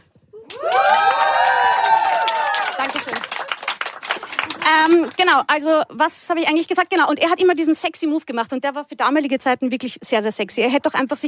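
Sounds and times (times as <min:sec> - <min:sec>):
audience whoops and shouts: 0:00.3 - 0:03.2
audience clapping and cheering at a live talk: 0:00.4 - 0:05.4
speech: 0:05.2 - 0:11.2.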